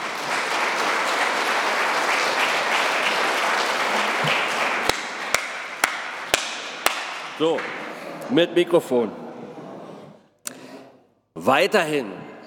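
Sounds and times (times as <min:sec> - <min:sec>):
audience applauding volunteers: 0:00.0 - 0:08.2
speech: 0:07.4 - 0:09.2, 0:11.4 - 0:12.2.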